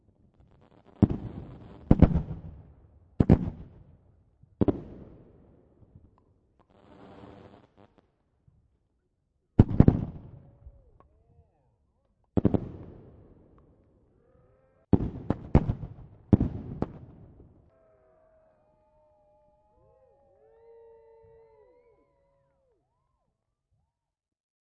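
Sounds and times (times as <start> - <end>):
distant fireworks display: 0.0 - 8.0, 9.6 - 11.0, 12.3 - 13.8, 14.9 - 19.0.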